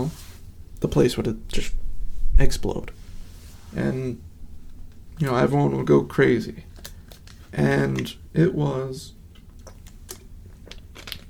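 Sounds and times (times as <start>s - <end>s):
low rumble: 0.4s - 6.7s
speech: 0.8s - 1.8s, 2.4s - 3.0s, 3.7s - 4.3s, 5.2s - 6.7s, 7.5s - 9.2s
plastic water bottle being handled and sipped from: 6.6s - 7.5s, 9.6s - 11.2s.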